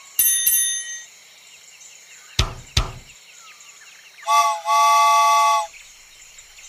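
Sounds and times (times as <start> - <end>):
sharp knocks: 2.4 - 3.1
train whistle: 4.3 - 5.7.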